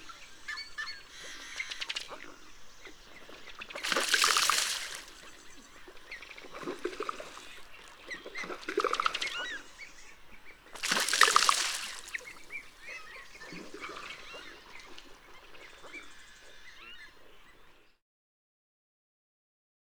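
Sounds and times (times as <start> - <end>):
male bubbling and ringing rush: 3.8 - 9.7, 10.8 - 14.8.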